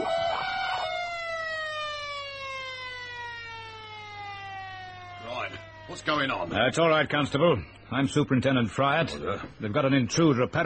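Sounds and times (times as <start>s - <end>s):
security alarm siren winding down: 0.0s - 6.6s
speech: 5.5s - 10.6s.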